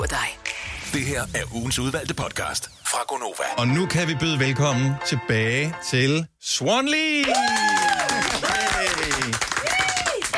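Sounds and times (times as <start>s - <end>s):
speech: 0.9s - 7.9s
audience applause welcoming guests: 7.2s - 10.3s.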